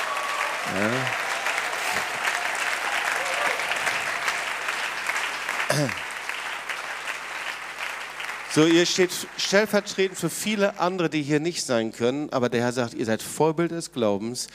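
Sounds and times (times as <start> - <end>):
person cheering: 0.0 - 3.8
audience applause: 0.0 - 10.8
speech: 0.7 - 1.2, 5.8 - 6.0, 8.5 - 14.5.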